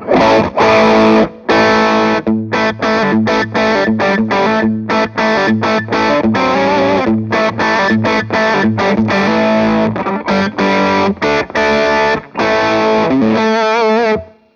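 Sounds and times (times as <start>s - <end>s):
electric guitar through a Tube Screamer overdrive playing chords: 0.0s - 14.5s.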